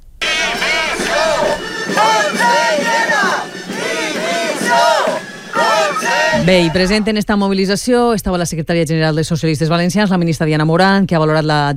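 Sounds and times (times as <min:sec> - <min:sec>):
crowd of protesters chanting at demonstration: 0:00.2 - 0:07.2
speech: 0:06.4 - 0:11.7.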